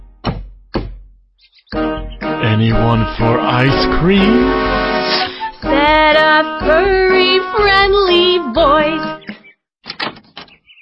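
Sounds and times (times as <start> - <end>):
knocking on a front door: 0.2 - 1.0
speech: 1.7 - 5.3, 5.9 - 9.2.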